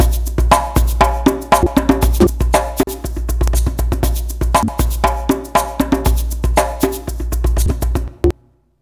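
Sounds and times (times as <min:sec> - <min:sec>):
modern percussion loops on MPC60: 0:00.0 - 0:08.3.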